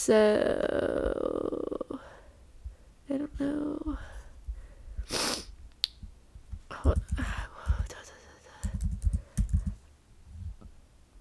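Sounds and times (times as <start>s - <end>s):
speech: 0.0s - 1.8s
soft breaths: 1.7s - 5.6s, 7.1s - 10.6s
typing on a laptop keyboard: 8.6s - 9.8s.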